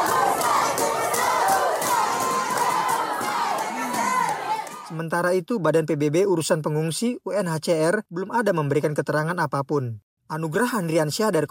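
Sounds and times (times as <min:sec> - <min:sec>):
large agitated crowd shouting: 0:00.0 - 0:05.0
speech: 0:05.0 - 0:11.4.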